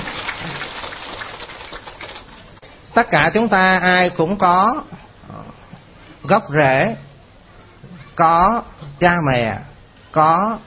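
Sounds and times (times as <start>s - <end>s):
audience applause: 0.0s - 2.5s
speech: 3.0s - 5.0s, 6.3s - 7.1s, 8.2s - 10.6s.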